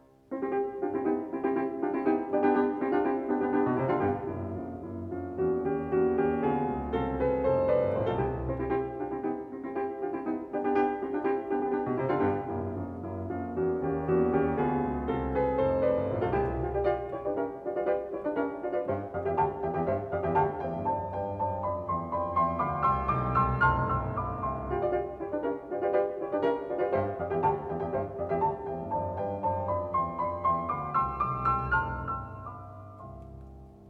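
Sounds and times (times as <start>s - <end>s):
presto scherzando piano piece in C major: 0.0s - 33.8s.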